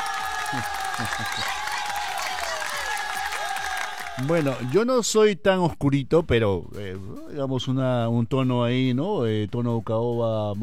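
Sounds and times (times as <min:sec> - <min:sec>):
applause: 0:00.0 - 0:04.8
speech: 0:00.5 - 0:01.9, 0:04.2 - 0:10.6.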